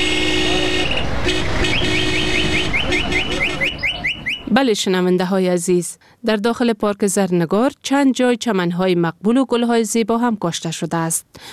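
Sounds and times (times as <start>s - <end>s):
car horns honking outside the park: 0.0s - 4.5s
street traffic: 0.0s - 6.3s
speech: 4.6s - 11.5s.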